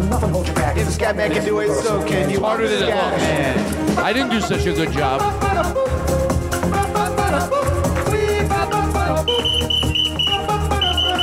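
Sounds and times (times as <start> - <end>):
dense steady music track: 0.0 - 11.2
speech: 0.2 - 6.1
whistling added by the hosts: 9.2 - 11.2.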